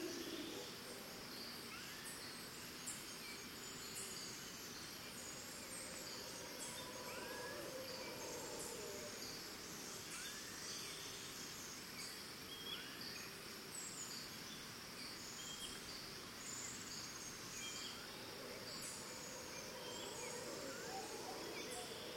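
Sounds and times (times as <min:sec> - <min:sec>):
distant monkeys in Costa Rica: 0:00.0 - 0:02.6, 0:03.5 - 0:10.7, 0:16.7 - 0:22.1
birds in Costa Rica: 0:00.0 - 0:22.1
crickets in Costa Rica: 0:00.0 - 0:22.1.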